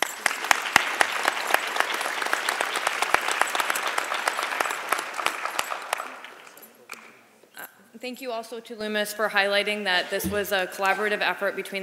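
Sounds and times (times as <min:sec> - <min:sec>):
audience applauding: 0:00.0 - 0:06.5
speech: 0:08.0 - 0:11.8.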